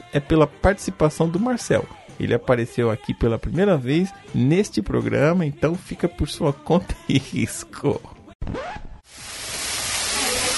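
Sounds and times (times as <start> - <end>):
speech: 0.1 - 8.8
hamburger patty sizzling in a pan: 9.1 - 10.5.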